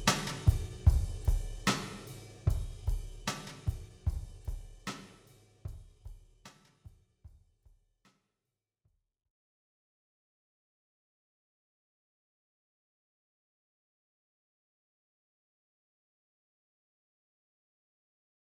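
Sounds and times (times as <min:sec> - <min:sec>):
drums: 0:00.0 - 0:07.5.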